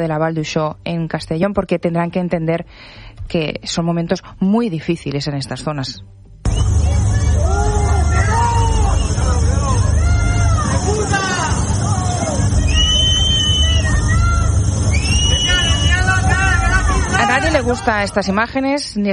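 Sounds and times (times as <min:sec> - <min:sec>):
speech: 0:00.0 - 0:06.6, 0:17.6 - 0:19.1
crowd of residents shouting at Pedro Sánchez: 0:06.5 - 0:18.5.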